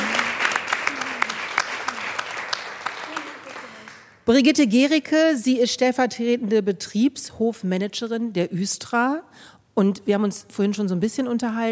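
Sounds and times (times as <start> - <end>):
audience applause: 0.0 - 4.2
speech: 4.3 - 11.6.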